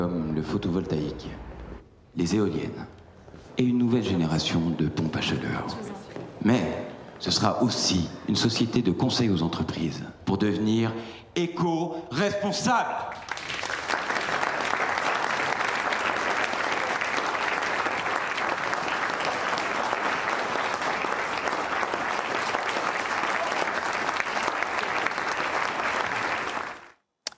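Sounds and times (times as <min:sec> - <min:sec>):
speech: 0:00.0 - 0:01.5, 0:02.2 - 0:03.0, 0:03.6 - 0:13.2
large audience applause in film excerpt: 0:13.1 - 0:27.0.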